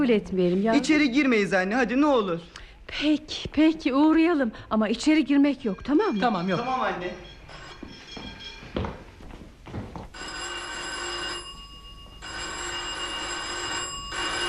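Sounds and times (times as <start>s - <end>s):
speech: 0.0s - 7.4s
electric doorbell ringing: 5.6s - 9.1s, 10.2s - 14.4s
footsteps: 5.8s - 10.2s.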